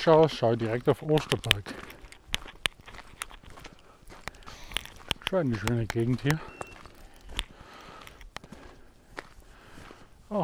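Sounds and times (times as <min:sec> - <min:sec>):
speech: 0:00.0 - 0:02.0, 0:05.3 - 0:06.6
footsteps walking along a forest edge: 0:00.0 - 0:10.4.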